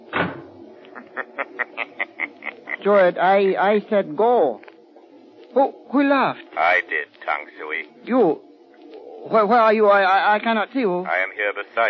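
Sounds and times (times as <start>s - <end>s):
door shutting: 0.1s - 0.6s
laughter: 0.8s - 3.0s
speech: 2.8s - 4.6s, 5.5s - 8.5s, 9.2s - 11.8s.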